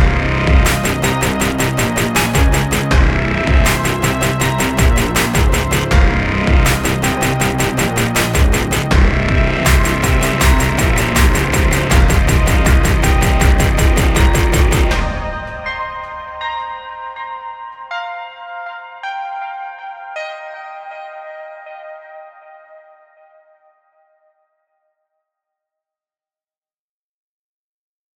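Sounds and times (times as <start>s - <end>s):
industrial sound: 0.0s - 16.8s.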